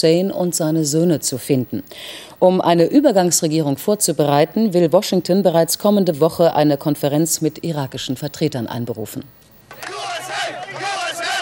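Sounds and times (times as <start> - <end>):
speech: 0.0 - 10.4
crowd cheering and shouting in the streets: 9.7 - 11.4.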